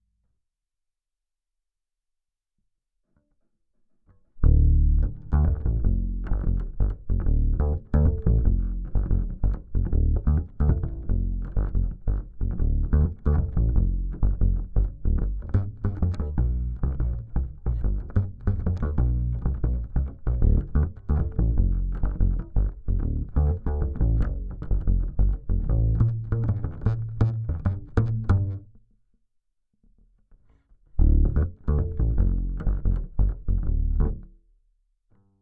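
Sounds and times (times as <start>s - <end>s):
bass guitar recorded by direct input: 4.4s - 28.8s, 30.0s - 34.4s.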